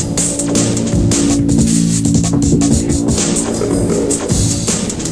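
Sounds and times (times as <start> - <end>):
8-bit fight music: 0.2 - 5.0.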